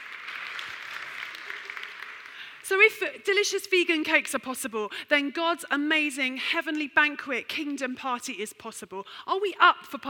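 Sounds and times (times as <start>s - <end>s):
audience applause: 0.0s - 2.6s
speech: 2.7s - 10.0s.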